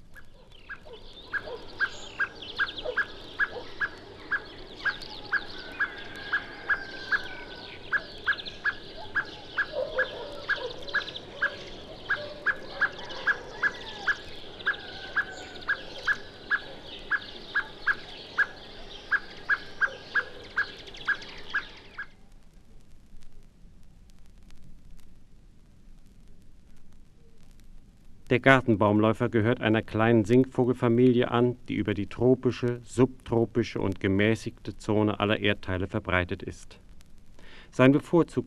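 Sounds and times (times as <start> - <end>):
blackbird ground-predator alarm call: 0.0 - 22.2
speech: 28.3 - 36.8, 37.7 - 38.4.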